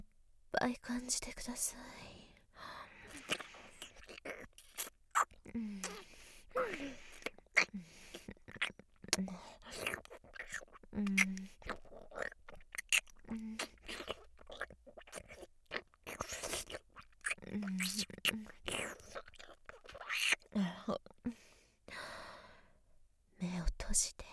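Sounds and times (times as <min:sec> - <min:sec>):
speech: 0:00.6 - 0:02.1, 0:05.5 - 0:05.9
wet squelching mouth sounds: 0:02.9 - 0:21.4.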